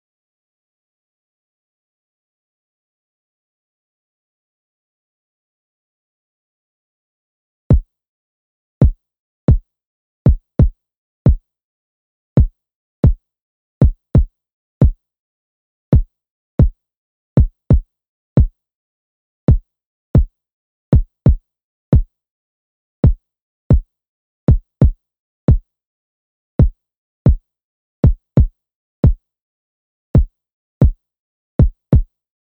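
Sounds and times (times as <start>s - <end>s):
kick drum: 7.7s - 7.9s, 8.8s - 9.6s, 10.3s - 11.4s, 12.4s - 13.2s, 13.8s - 15.0s, 15.9s - 16.8s, 17.4s - 18.6s, 19.5s - 20.3s, 20.9s - 22.1s, 23.0s - 23.9s, 24.5s - 25.7s, 26.6s - 27.4s, 28.0s - 29.2s, 30.2s - 31.0s, 31.6s - 32.1s.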